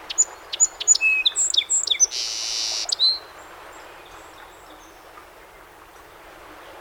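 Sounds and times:
song sparrow song: 0.1 - 6.7.

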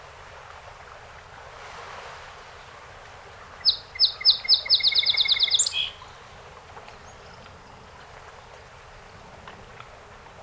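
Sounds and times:
song sparrow singing: 3.6 - 6.1.

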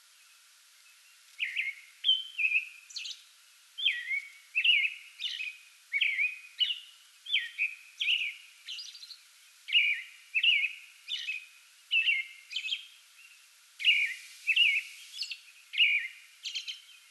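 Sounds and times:
American robin caroling slurred whistled phrases: 3.8 - 9.0, 9.7 - 12.8, 13.8 - 16.8.

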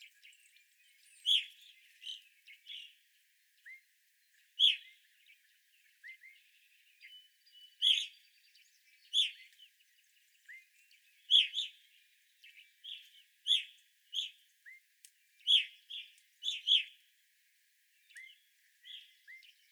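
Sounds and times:
evening grosbeak calls: 1.0 - 3.0, 4.6 - 5.0, 7.0 - 8.2, 9.0 - 9.8, 10.4 - 11.8, 12.4 - 14.8, 15.4 - 17.0, 18.1 - 19.7.

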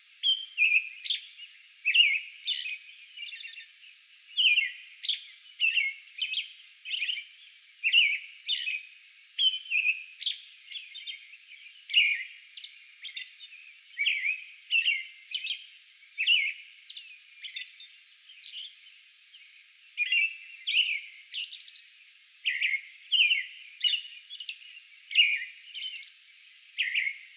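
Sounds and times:
American robin singing: 0.0 - 3.7, 4.3 - 19.0, 20.0 - 26.2, 26.8 - 27.3.

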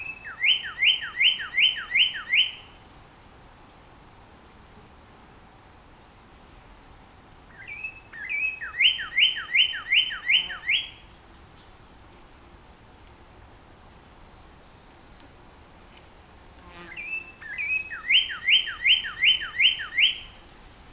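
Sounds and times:
Northern Cardinal whistled song: 0.0 - 2.7, 7.5 - 11.0, 17.0 - 20.4.

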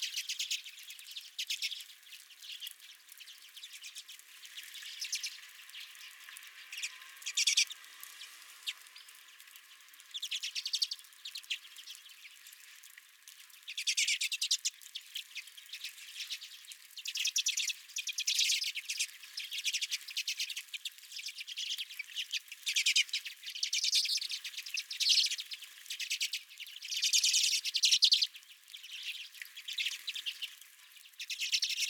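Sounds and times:
redpoll flock twittering: 0.0 - 9.2, 10.0 - 12.6, 13.6 - 31.8.

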